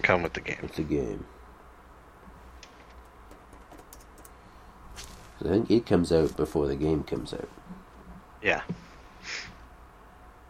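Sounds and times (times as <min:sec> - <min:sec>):
hiss: 0:00.0 - 0:10.4
speech: 0:00.1 - 0:01.4, 0:05.4 - 0:07.7, 0:08.4 - 0:09.5
typing on a computer keyboard: 0:03.3 - 0:04.4.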